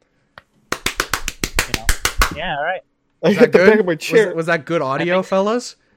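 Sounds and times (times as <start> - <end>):
hand claps: 0.4 - 2.5
speech: 1.7 - 5.8.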